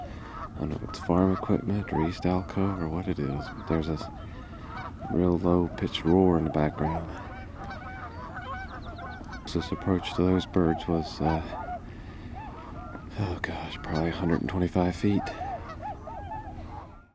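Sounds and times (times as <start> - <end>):
tundra swan: 0.0 - 17.1.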